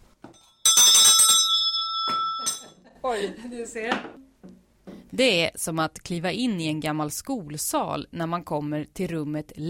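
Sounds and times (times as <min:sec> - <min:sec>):
school break bell rung on teacher's desk: 0:00.4 - 0:02.8
speech: 0:03.0 - 0:04.3, 0:05.1 - 0:09.6.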